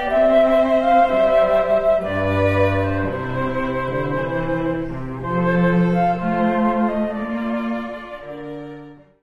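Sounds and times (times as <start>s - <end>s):
trio playing an air: 0.0s - 9.0s.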